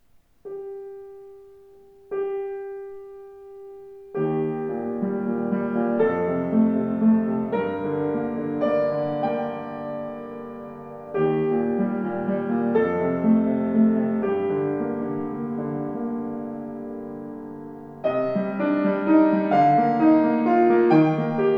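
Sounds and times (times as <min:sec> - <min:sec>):
Schimmel piano: 0:00.0 - 0:21.5.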